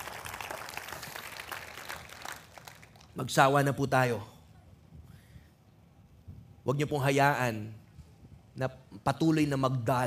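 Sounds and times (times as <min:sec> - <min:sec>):
congregation applauding during a church service: 0:00.0 - 0:03.2
speech: 0:03.2 - 0:04.3, 0:06.7 - 0:07.8, 0:08.6 - 0:10.0.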